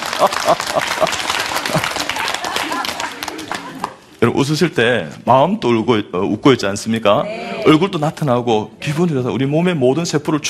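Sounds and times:
audience laughing: 0:00.0 - 0:04.0
audience clapping hands: 0:00.0 - 0:04.1
speech: 0:00.2 - 0:01.9, 0:04.2 - 0:10.4.

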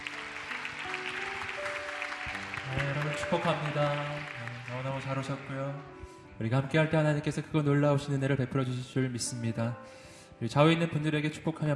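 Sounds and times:
crowd welcoming applause: 0:00.0 - 0:05.9
speech: 0:03.3 - 0:11.7.

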